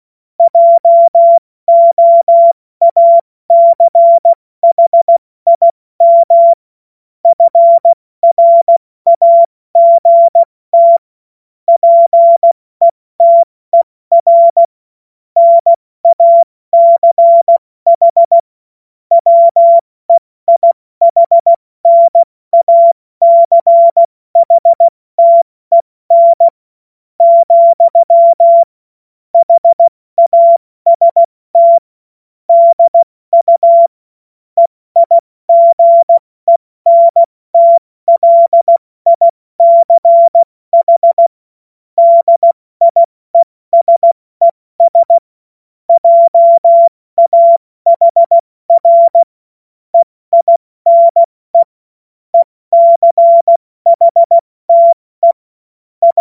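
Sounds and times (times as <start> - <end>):
CW Morse code beeps: 0.4 - 6.6, 7.3 - 11.0, 11.7 - 14.7, 15.4 - 18.5, 19.1 - 26.6, 27.2 - 28.8, 29.4 - 31.9, 32.5 - 34.0, 34.6 - 41.4, 42.0 - 45.2, 45.9 - 49.4, 50.0 - 51.8, 52.4 - 55.4.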